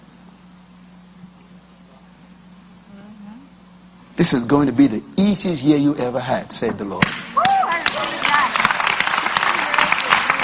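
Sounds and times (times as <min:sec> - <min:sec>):
speech: 0:04.2 - 0:07.3
crowd clapping: 0:07.0 - 0:10.4.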